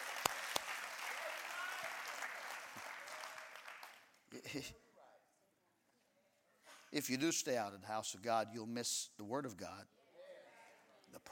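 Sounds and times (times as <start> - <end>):
hand clapping: 0.0 - 4.2
speech: 4.5 - 4.9, 6.9 - 9.9, 11.2 - 11.3.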